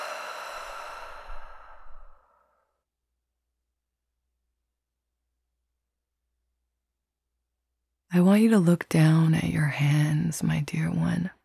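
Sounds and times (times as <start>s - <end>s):
deep breath exhale: 0.0s - 2.8s
speech: 8.1s - 11.4s.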